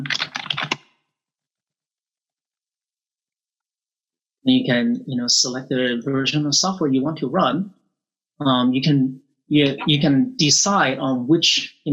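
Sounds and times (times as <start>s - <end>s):
typing on a computer keyboard: 0.0s - 0.8s
speech: 4.5s - 7.8s, 8.4s - 11.9s.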